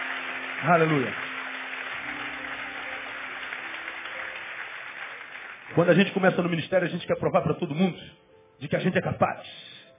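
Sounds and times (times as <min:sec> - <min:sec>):
audience applauding: 0:00.0 - 0:06.6
speech: 0:00.6 - 0:01.2, 0:05.8 - 0:09.7.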